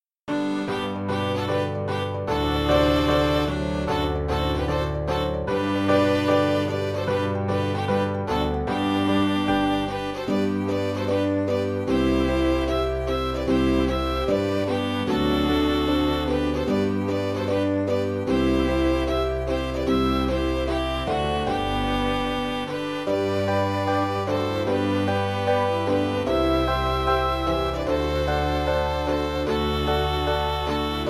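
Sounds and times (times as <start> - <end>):
orchestral piece in G major: 0.3 - 31.0.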